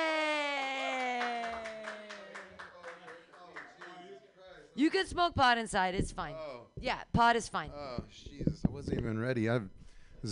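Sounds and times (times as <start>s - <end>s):
person whooping: 0.0s - 2.5s
audience applause for a stand-up comedian at an open mic: 0.0s - 4.0s
speech: 4.8s - 10.3s.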